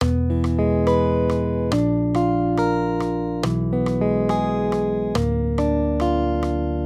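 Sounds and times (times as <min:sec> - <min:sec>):
major triads: 0:00.0 - 0:06.8.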